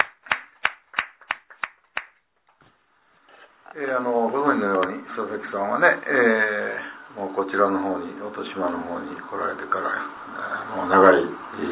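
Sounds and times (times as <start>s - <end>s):
people clapping: 0.0s - 2.2s
speech: 3.7s - 11.7s.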